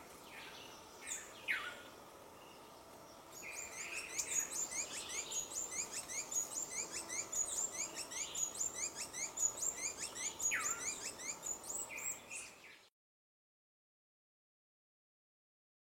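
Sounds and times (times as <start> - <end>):
soft hiss: 0.0 - 12.9
dusky-throated hermit squeaky calls: 3.4 - 12.2.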